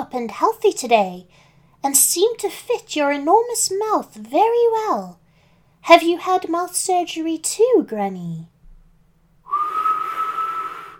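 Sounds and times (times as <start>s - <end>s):
speech: 0.1s - 5.2s, 5.8s - 8.5s
kettle whistling as it finishes boiling: 9.5s - 10.9s.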